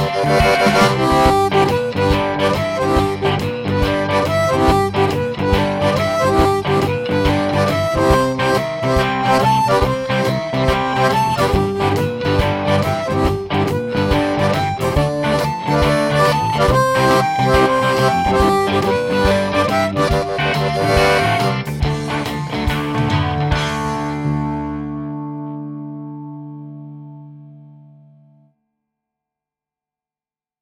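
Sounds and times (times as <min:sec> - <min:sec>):
harmonica shuffle boogie in single notes with tongue blocking: 0:00.0 - 0:24.4.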